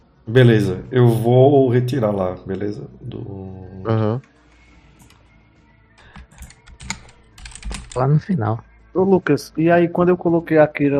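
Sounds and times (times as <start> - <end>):
speech: 0.3 - 4.3, 8.0 - 10.9
typing on a computer keyboard: 6.0 - 8.0.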